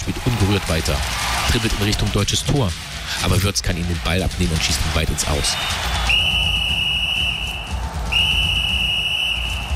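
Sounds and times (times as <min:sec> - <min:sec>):
speech: 0:00.1 - 0:06.2
referee's whistle blown: 0:05.5 - 0:09.7.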